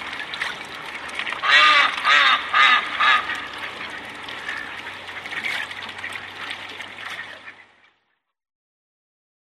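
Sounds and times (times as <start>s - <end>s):
ducks: 1.2s - 7.9s.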